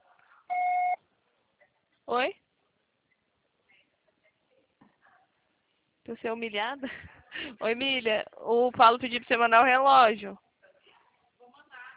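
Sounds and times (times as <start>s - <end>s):
low noise murmur: 0.0s - 11.9s
voicemail recording electronic beep: 0.5s - 1.0s
speech: 2.1s - 2.4s, 6.1s - 10.4s.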